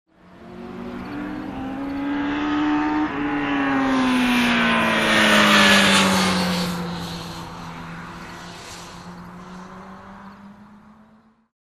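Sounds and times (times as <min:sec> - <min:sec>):
motorcycle passing by: 0:00.1 - 0:11.5.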